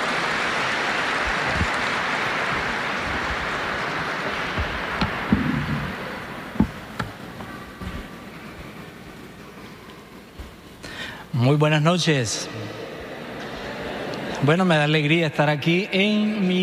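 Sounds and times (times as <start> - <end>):
audience applause: 0.0 - 7.6
speech: 11.4 - 12.7, 14.4 - 16.6.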